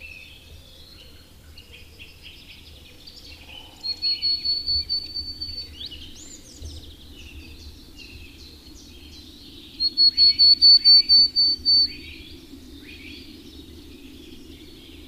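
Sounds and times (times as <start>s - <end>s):
soft twittering from other birds: 0.1s - 15.0s
willow tit song: 3.8s - 5.9s, 9.8s - 12.0s.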